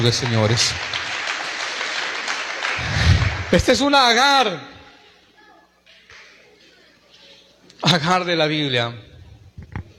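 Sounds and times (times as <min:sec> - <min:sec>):
speech: 0:00.0 - 0:01.1, 0:03.5 - 0:04.7, 0:07.8 - 0:09.1
crowd applauding: 0:00.0 - 0:04.0.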